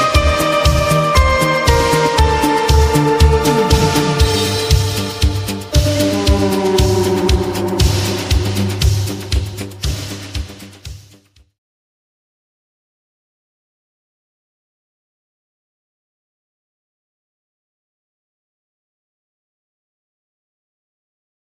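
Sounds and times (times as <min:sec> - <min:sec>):
italo disco music: 0:00.0 - 0:10.7.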